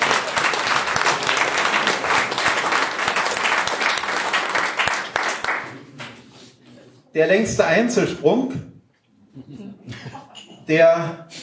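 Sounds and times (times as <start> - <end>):
audience applause: 0.0 - 6.2
speech: 7.2 - 8.7, 10.7 - 11.3.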